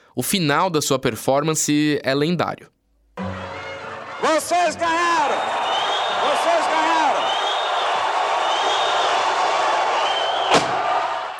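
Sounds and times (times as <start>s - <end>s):
speech: 0.2s - 2.8s, 4.5s - 5.6s
jeering crowd roaring: 3.2s - 11.3s.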